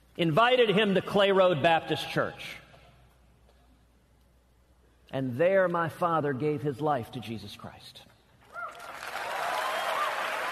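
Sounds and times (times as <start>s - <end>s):
speech: 0.2s - 2.6s, 5.1s - 8.1s
audience applause in university auditorium: 8.7s - 10.5s.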